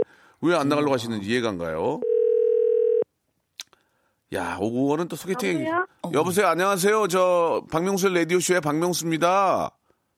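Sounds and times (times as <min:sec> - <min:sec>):
speech: 0:00.4 - 0:02.1, 0:04.3 - 0:09.8
telephone call connecting tone: 0:02.0 - 0:03.0.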